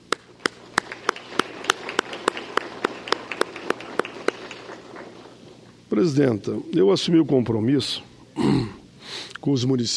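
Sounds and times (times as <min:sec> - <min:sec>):
audience applause: 0:00.2 - 0:05.5
speech: 0:06.0 - 0:08.8, 0:09.4 - 0:09.9.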